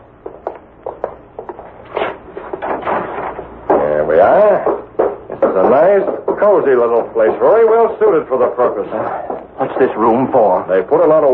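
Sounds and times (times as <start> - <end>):
door being opened: 2.0 - 4.0
speech: 5.7 - 11.3.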